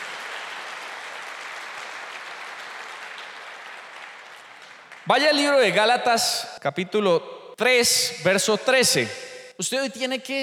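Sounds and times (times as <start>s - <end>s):
audience applause: 0.0s - 5.1s
speech: 5.0s - 10.4s.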